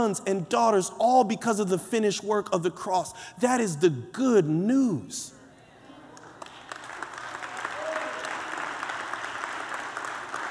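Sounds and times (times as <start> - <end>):
speech: 0.0 - 5.4
faint crowd murmur: 5.4 - 6.4
small audience clapping: 6.2 - 10.4.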